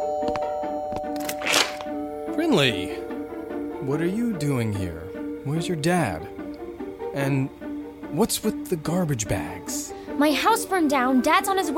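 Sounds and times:
doorbell ringing: 0:00.0 - 0:03.9
speech: 0:02.4 - 0:03.0, 0:03.8 - 0:06.4, 0:07.1 - 0:11.7.

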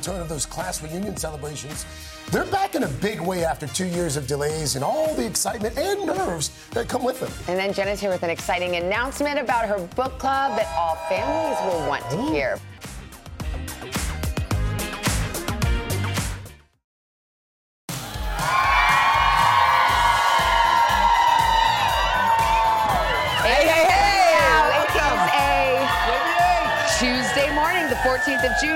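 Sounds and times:
speech: 0:00.0 - 0:12.7, 0:28.2 - 0:28.7
rhythmic music: 0:00.0 - 0:16.6, 0:17.9 - 0:28.7
outdoor crowd cheering and whooping: 0:10.2 - 0:12.6, 0:17.9 - 0:28.7.

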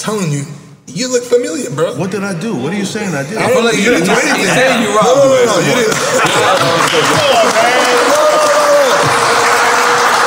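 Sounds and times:
speech: 0:00.0 - 0:08.4
laughter: 0:03.5 - 0:10.2
clapping: 0:05.9 - 0:10.2.

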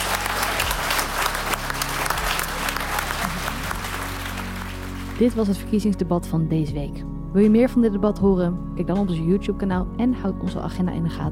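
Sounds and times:
audience applause: 0:00.0 - 0:05.4
speech: 0:05.2 - 0:11.2.

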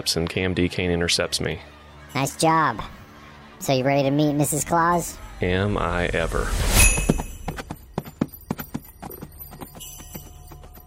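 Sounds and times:
speech: 0:00.0 - 0:03.0, 0:03.6 - 0:06.8
hoofbeats of reindeer pulling a sleigh over uneven ground: 0:06.8 - 0:10.8.

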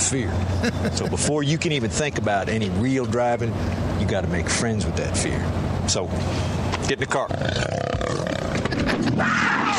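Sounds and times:
speech: 0:00.1 - 0:08.2, 0:09.0 - 0:09.6
cougar growl: 0:07.2 - 0:08.8.

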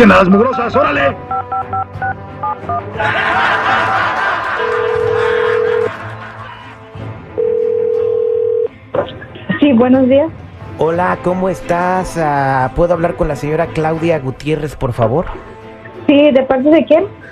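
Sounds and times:
speech: 0:00.0 - 0:04.8, 0:09.0 - 0:15.5, 0:16.1 - 0:17.2
people laughing: 0:02.8 - 0:07.1
telephone ringing tones on the line: 0:04.6 - 0:05.9, 0:07.4 - 0:08.7.

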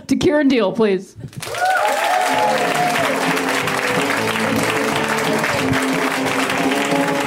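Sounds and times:
speech: 0:00.1 - 0:01.8, 0:02.4 - 0:03.4
comedy-show crowd applause greeting the next comedian: 0:01.4 - 0:07.2.

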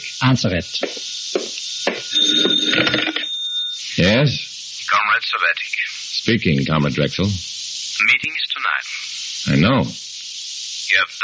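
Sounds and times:
speech: 0:00.2 - 0:01.2, 0:02.3 - 0:03.2, 0:04.0 - 0:04.5, 0:05.2 - 0:10.0, 0:10.9 - 0:11.2
old-style telephone bell ringing: 0:01.8 - 0:03.8.

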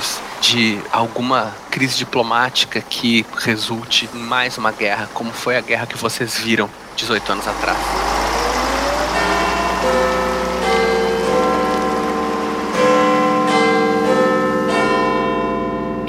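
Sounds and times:
speech: 0:00.4 - 0:08.1
clock tower bell striking: 0:07.1 - 0:16.0.

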